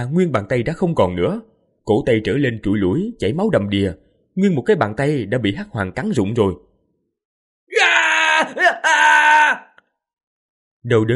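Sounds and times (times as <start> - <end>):
speech: 0.0 - 6.7, 10.8 - 11.1
man screaming in pain: 7.7 - 9.8.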